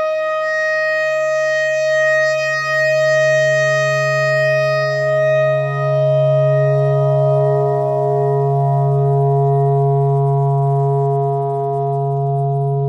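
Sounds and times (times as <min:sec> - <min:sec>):
clarinet playing pentatonic notes: 0:00.0 - 0:12.7.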